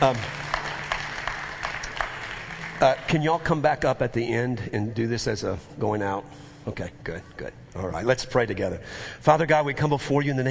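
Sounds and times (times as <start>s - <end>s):
audience clapping in rhythm: 0.0s - 4.0s
speech: 2.8s - 10.5s.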